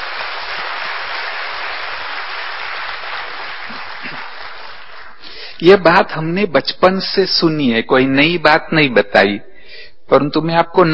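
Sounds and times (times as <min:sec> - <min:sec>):
audience clapping: 0:00.0 - 0:05.5
speech: 0:05.6 - 0:09.5, 0:10.1 - 0:10.9.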